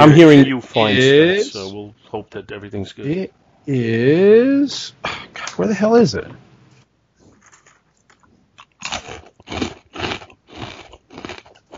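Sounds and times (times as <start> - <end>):
speech: 0.0 - 6.4
crunchy eating of a pretzel: 7.2 - 11.7.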